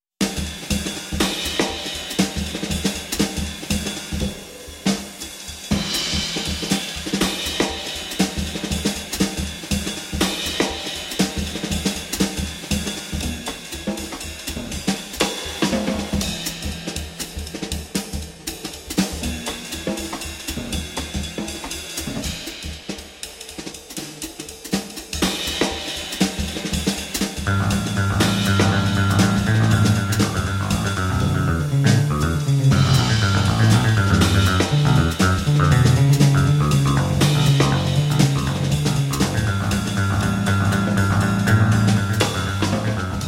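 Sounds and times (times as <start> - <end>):
jazz ensemble in D major: 0.2 - 23.0, 24.9 - 43.2.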